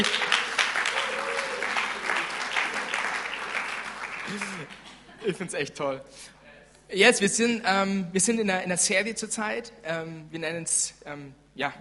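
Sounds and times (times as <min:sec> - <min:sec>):
audience applause: 0:00.0 - 0:04.9
speech: 0:05.2 - 0:11.7.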